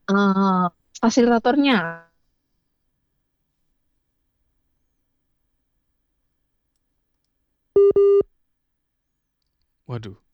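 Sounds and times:
speech: 0.1 - 2.1, 9.9 - 10.2
telephone busy tone: 7.8 - 8.2.

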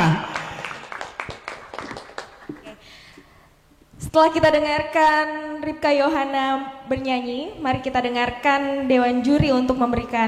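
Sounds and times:
audience applause: 0.3 - 2.8
speech: 4.2 - 10.2.

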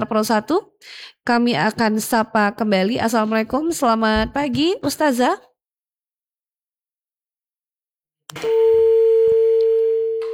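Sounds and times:
speech: 0.0 - 5.5, 8.3 - 8.8
telephone tone after a dropped call: 8.3 - 10.3.

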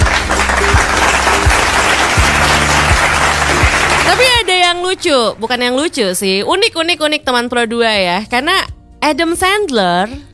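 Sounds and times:
applause: 0.0 - 5.2
speech: 4.1 - 10.3.

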